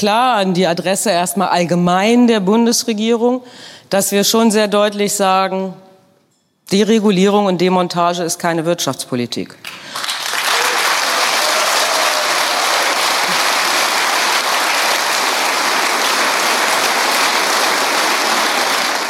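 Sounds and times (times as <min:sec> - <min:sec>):
speech: 0:00.0 - 0:05.8, 0:06.7 - 0:10.2
applause from the front row: 0:09.6 - 0:19.0.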